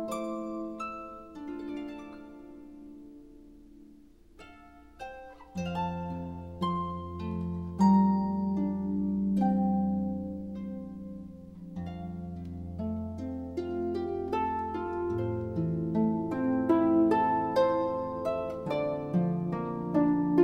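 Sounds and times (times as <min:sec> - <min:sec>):
instrumental harp praise music: 0:00.0 - 0:20.4.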